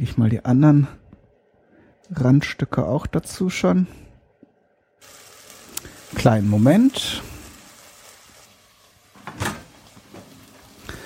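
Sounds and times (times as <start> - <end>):
speech: 0.0 - 1.0, 2.1 - 4.0, 6.1 - 7.3
second frying pan fetched from a cupboard: 9.1 - 10.7.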